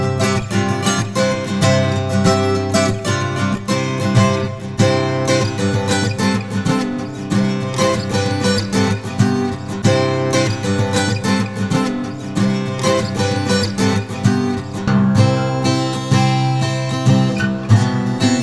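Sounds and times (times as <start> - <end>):
Americana guitars in open C tuning: 0.0 - 18.4.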